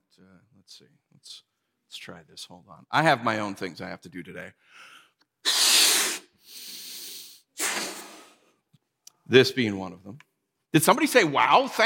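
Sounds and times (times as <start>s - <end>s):
speech: 0.2s - 5.0s, 9.3s - 11.8s
person blowing up balloon: 5.4s - 8.6s.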